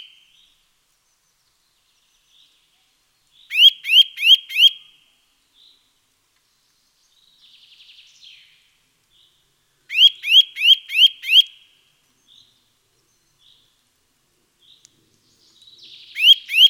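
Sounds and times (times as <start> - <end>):
Eurasian nuthatch Sitta europaea calling rising whistled notes: 3.5 - 4.8, 9.9 - 11.5, 16.1 - 16.6.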